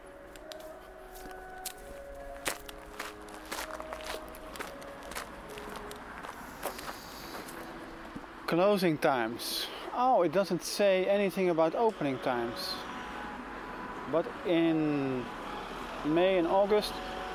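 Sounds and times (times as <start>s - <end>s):
faint outdoor noise: 0.0s - 17.3s
footsteps walking back through a park: 0.1s - 8.3s
speech: 8.5s - 12.9s, 14.1s - 15.4s, 16.0s - 17.1s.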